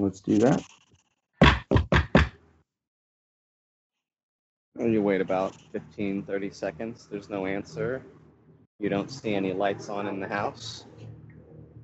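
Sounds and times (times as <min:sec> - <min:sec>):
speech: 0:00.0 - 0:00.8, 0:04.8 - 0:08.2, 0:08.8 - 0:11.0
firm knocking on a door: 0:01.4 - 0:02.4.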